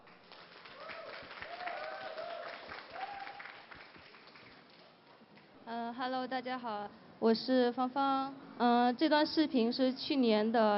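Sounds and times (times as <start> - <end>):
audience applause: 0.0 - 4.8
speech: 5.7 - 10.7.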